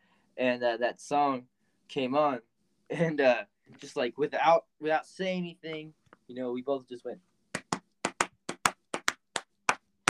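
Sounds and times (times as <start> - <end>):
speech: 0.4 - 7.3
hand claps imitating a song's beat: 7.5 - 10.0.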